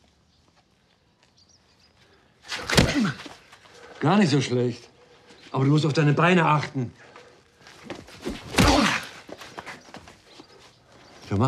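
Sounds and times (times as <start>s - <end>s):
punches landing during sparring: 2.5s - 3.5s, 7.8s - 9.8s
speech: 4.0s - 4.9s, 5.5s - 7.0s.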